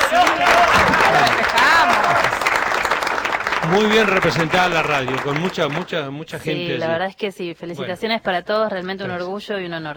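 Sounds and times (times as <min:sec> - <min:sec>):
audience applause: 0:00.0 - 0:06.1
speech: 0:03.7 - 0:09.9.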